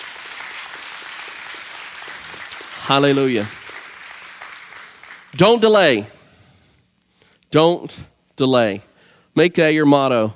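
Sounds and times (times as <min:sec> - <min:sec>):
congregation clapping in praise during a church service: 0:00.0 - 0:05.9
speech: 0:02.9 - 0:03.6, 0:05.4 - 0:06.2, 0:07.5 - 0:10.3.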